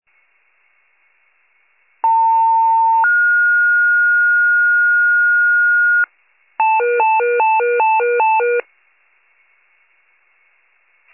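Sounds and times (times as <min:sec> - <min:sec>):
fire pager alert: 0:02.0 - 0:08.6.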